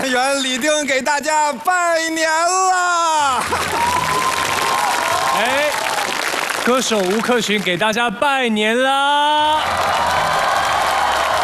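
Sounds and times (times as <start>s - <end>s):
speech: 0.0s - 4.3s, 6.6s - 10.5s
audience applause at a Chinese New Year greeting show: 3.4s - 7.8s, 9.5s - 11.4s.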